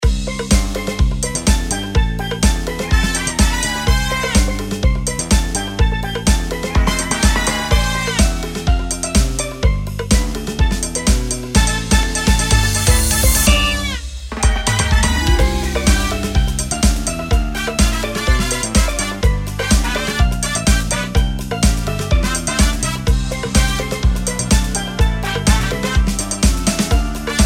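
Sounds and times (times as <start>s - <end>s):
instrumental music: 0.0s - 27.4s.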